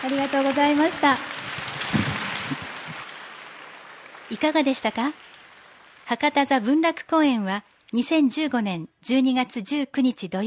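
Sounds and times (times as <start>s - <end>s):
speech: 0.0s - 1.6s, 4.3s - 5.3s, 6.1s - 10.4s
audience applause: 0.0s - 6.8s.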